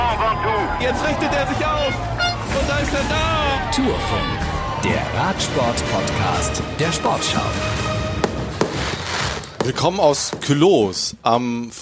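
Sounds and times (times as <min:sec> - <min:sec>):
speech: 0:00.8 - 0:07.8, 0:09.6 - 0:11.8
fireworks exploding, recorded on a mobile phone: 0:08.1 - 0:10.6.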